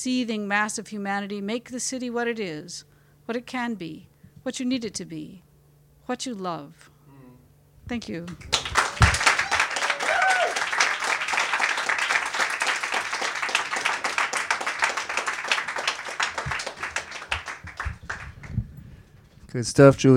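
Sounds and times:
speech: 0.0 - 5.5, 6.1 - 6.9, 7.9 - 8.6, 19.6 - 20.1
audience applause: 8.4 - 18.6.

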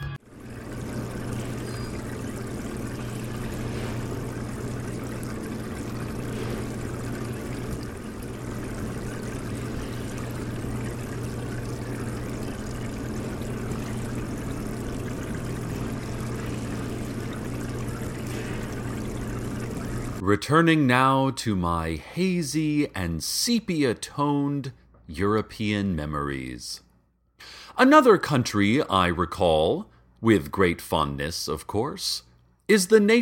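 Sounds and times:
aquarium pump running: 0.0 - 20.2
bubbling, trickling water: 0.2 - 20.2
speech: 20.3 - 26.8, 27.4 - 33.1.

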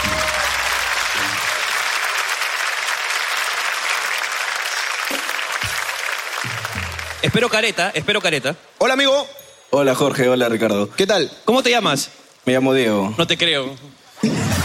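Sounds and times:
audience applause: 0.0 - 7.8
speech: 7.2 - 14.6.

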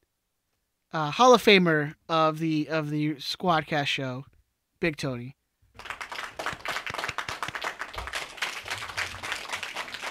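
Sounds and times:
speech: 0.9 - 5.9
canned applause sound effect: 5.8 - 10.0.

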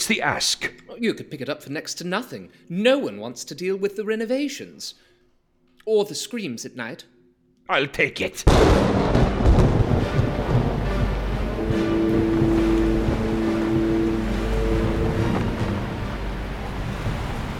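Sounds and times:
speech: 0.1 - 5.1, 5.8 - 7.1, 7.7 - 9.2
crashing sea surf: 8.5 - 17.5
low rumbling: 8.5 - 17.5
strong wind roaring: 8.8 - 17.5
faint tonal drone: 10.3 - 17.5.

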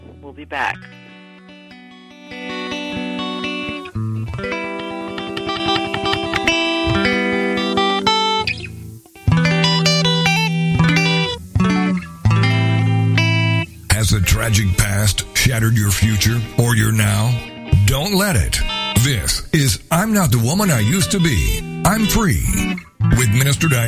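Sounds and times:
break music with distorted guitar-like chords: 0.0 - 23.8
speech: 0.2 - 1.0, 14.3 - 23.8.

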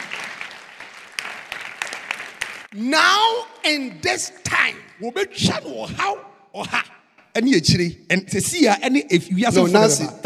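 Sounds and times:
audience clapping hands: 0.0 - 2.8
speech: 2.7 - 10.2.

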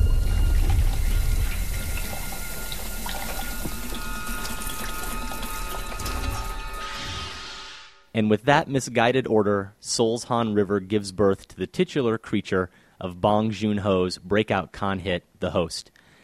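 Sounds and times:
liquid being poured into a sink: 0.2 - 6.8
speech: 8.2 - 16.0.

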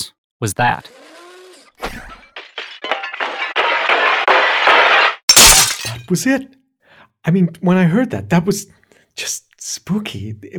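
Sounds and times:
speech: 0.4 - 1.0, 6.1 - 6.6, 7.2 - 10.5
window glass smashing: 2.2 - 6.1
tinkling glass shards: 5.3 - 6.0.

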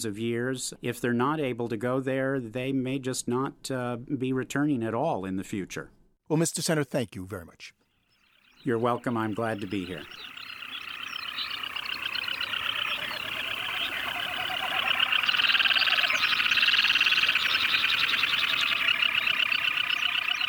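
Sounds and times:
speech: 0.0 - 7.8, 8.6 - 10.4
waterbirds calling at lake during mating season: 8.0 - 20.4.

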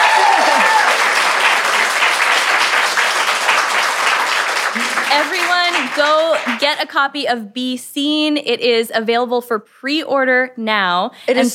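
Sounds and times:
person cheering: 0.0 - 1.1
audience applause: 0.0 - 6.7
speech: 5.2 - 11.5.

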